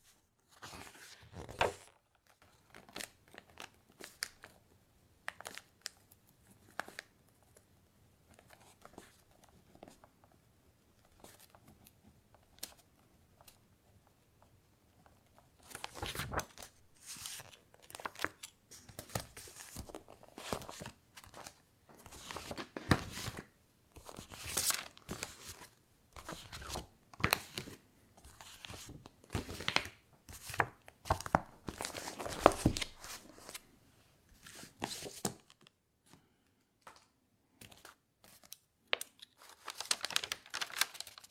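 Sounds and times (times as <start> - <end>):
paper crinkling and rustling: 0.5 - 3.1, 15.6 - 23.4, 24.0 - 33.6, 39.2 - 41.2
page turning: 0.5 - 4.4, 15.6 - 23.4, 24.0 - 33.6, 34.4 - 35.6, 37.6 - 41.2.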